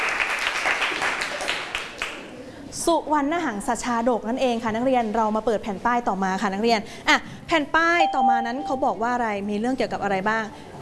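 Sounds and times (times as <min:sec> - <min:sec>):
students in a classroom clapping for a classmate: 0:00.0 - 0:02.2
speech: 0:02.9 - 0:10.7.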